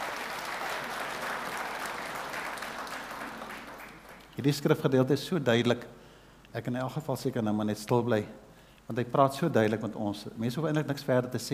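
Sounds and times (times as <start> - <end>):
audience applause: 0.0 - 4.4
speech: 4.4 - 11.5.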